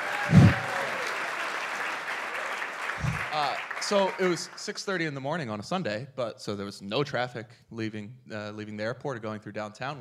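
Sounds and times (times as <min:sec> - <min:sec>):
audience applause: 0:00.0 - 0:04.6
speech: 0:03.4 - 0:09.9.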